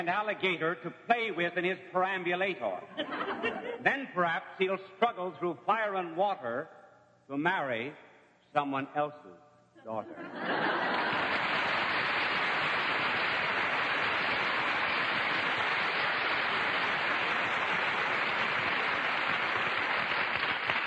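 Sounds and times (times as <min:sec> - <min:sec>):
speech: 0:00.0 - 0:11.2
laughter: 0:02.9 - 0:04.0, 0:09.8 - 0:11.8
audience applause: 0:10.4 - 0:20.8.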